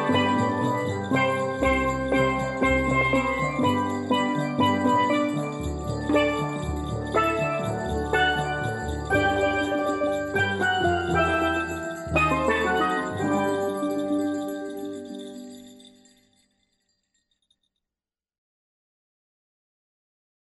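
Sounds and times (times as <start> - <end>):
steel drums playing a Christmas song: 0.0 - 15.8.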